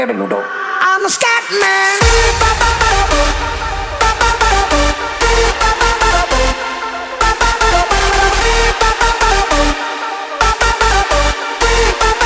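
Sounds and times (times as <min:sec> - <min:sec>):
music beat: 0:00.2 - 0:12.2.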